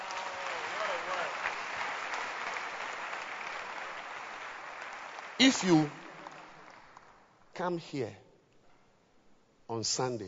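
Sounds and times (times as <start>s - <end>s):
church congregation clapping hands: 0.0s - 7.8s
speech: 5.4s - 6.0s, 7.6s - 8.2s, 9.7s - 10.2s.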